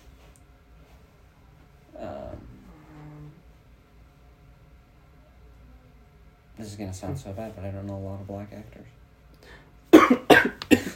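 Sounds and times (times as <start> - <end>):
speech: 6.6 - 9.0
person coughing after choking on spit: 9.9 - 10.9.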